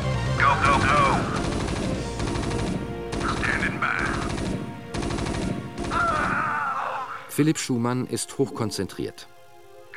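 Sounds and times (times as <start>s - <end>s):
video game gunfire: 0.6s - 6.6s
speech: 7.4s - 9.4s.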